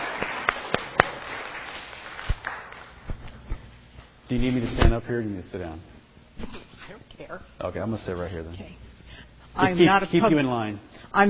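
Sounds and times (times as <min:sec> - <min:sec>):
audience clapping: 0:00.0 - 0:03.4
speech: 0:04.3 - 0:06.6, 0:07.3 - 0:11.2.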